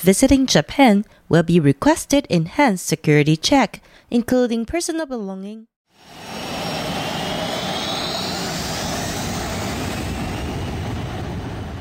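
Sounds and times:
speech: 0:00.0 - 0:06.3
aircraft engines roaring at a busy airport: 0:05.9 - 0:11.8
faint high jet whine: 0:06.0 - 0:11.6.

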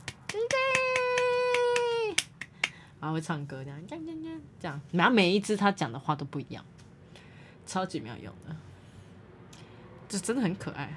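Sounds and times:
quick hand claps mimicking a clapping toy: 0:00.0 - 0:02.8
speech: 0:03.0 - 0:06.8, 0:07.7 - 0:08.7, 0:10.1 - 0:10.9.

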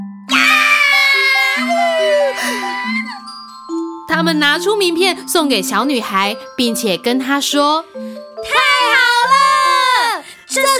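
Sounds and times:
two clowns screaming happily: 0:00.3 - 0:03.4, 0:08.5 - 0:10.2
speech: 0:04.1 - 0:08.6.

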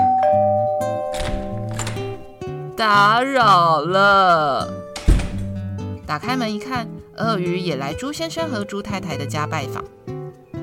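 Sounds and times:
two-tone doorbell chime: 0:00.0 - 0:02.7
speech: 0:02.8 - 0:04.8, 0:06.1 - 0:10.0.

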